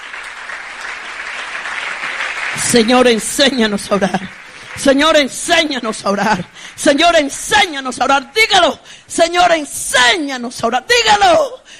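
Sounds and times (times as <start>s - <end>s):
crowd applause: 0.0s - 7.3s
speech: 2.6s - 11.7s.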